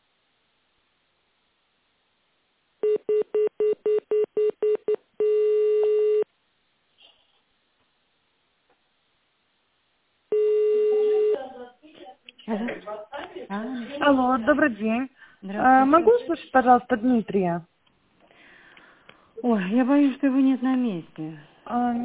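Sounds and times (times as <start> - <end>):
telephone touch-tone dialing: 2.8 - 6.2, 10.3 - 11.4
speech: 14.1 - 17.7, 19.4 - 22.0.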